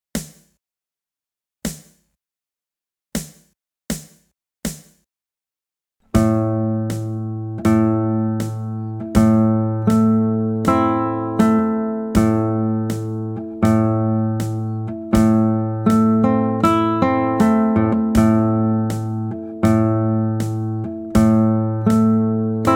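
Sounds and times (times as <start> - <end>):
slow rhythm: 6.1 - 22.7.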